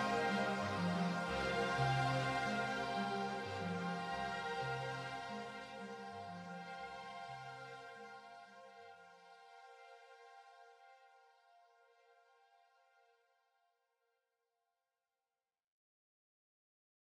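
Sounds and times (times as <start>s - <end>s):
vintage string instruments playing: 0.0s - 10.3s.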